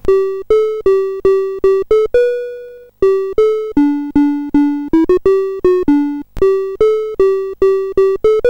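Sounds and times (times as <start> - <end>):
Commodore BASIC computer sound: 0.0 - 8.4.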